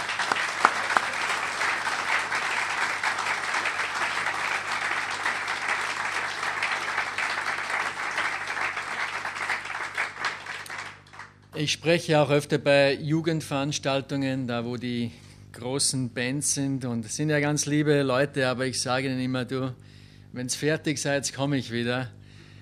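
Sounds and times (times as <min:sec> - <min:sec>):
audience applause: 0:00.0 - 0:11.4
speech: 0:11.6 - 0:22.2.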